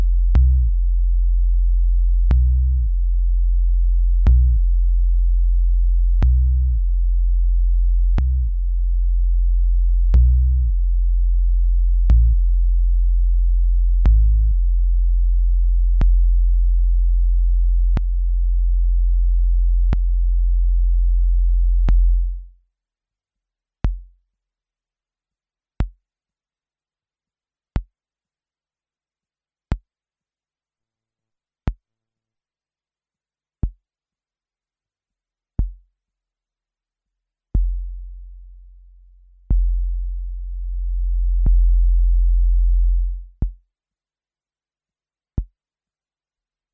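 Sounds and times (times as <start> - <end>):
MFB Tanzbaer drum machine bass drum: 0.0 - 22.6, 23.8 - 24.1, 35.6 - 35.9, 37.6 - 43.6.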